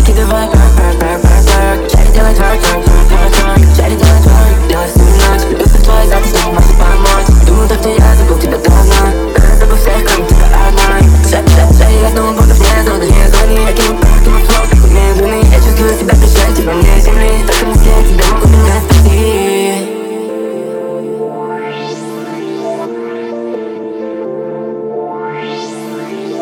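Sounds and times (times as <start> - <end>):
twerk remix percussion: 0.0 - 19.5.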